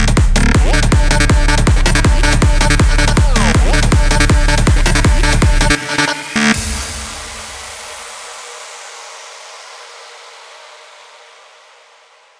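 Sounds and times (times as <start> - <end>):
party music remix: 0.0 - 7.3.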